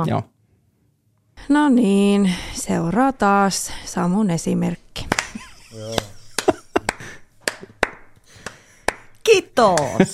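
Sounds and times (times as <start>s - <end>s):
speech: 0.0s - 0.3s, 1.4s - 5.1s, 5.7s - 6.2s, 9.3s - 10.1s
sharp separate claps: 5.0s - 10.0s
laughter: 5.2s - 7.8s, 9.8s - 10.1s.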